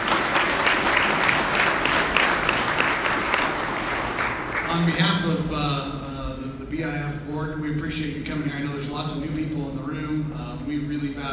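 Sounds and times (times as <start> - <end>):
round of applause: 0.0 - 5.0
speech: 4.8 - 6.1, 6.8 - 11.3.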